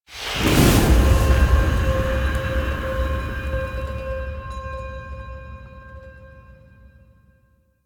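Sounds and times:
cabin enter music stinger: 0.8 - 7.1.

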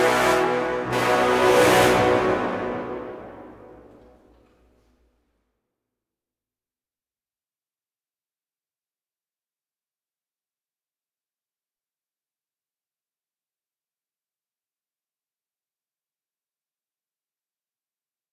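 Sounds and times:
heavy brass: 0.0 - 4.5.

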